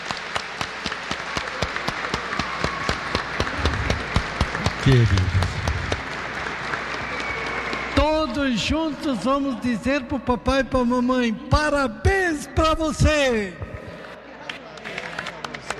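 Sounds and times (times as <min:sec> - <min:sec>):
audience applauding: 0:00.0 - 0:08.7, 0:14.5 - 0:15.7
speech: 0:04.9 - 0:05.4, 0:08.4 - 0:13.6.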